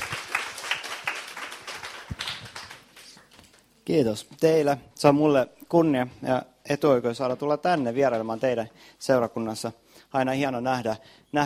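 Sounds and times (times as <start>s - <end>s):
audience applause: 0.0s - 3.3s
speech: 3.9s - 11.4s.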